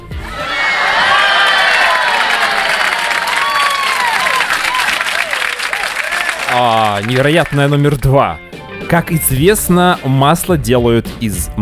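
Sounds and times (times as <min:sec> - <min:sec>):
crowd cheering: 0:00.0 - 0:08.2
excited shouts: 0:00.2 - 0:07.8
large audience applause: 0:00.2 - 0:08.1
speech: 0:06.6 - 0:11.6.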